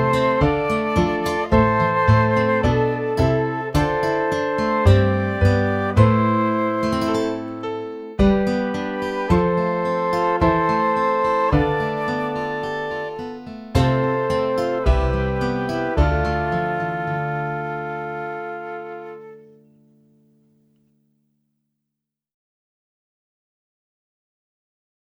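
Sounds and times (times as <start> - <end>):
flute: 0.0 - 19.6.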